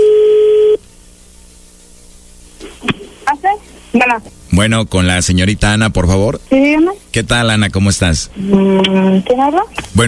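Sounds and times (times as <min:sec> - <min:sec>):
telephone ringback tone: 0:00.0 - 0:00.8
quiet phone line hiss: 0:00.0 - 0:02.8
speech: 0:04.0 - 0:10.0.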